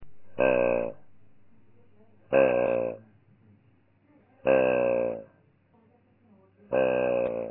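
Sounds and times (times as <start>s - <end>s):
grunt: 0.2s - 1.3s, 2.3s - 3.0s, 4.4s - 5.3s, 6.7s - 7.5s.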